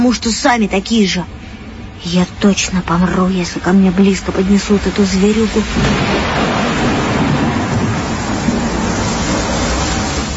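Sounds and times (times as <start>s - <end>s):
speech: 0.0s - 1.4s, 2.0s - 6.2s
thunderstorm with rolling thunder: 5.5s - 10.3s.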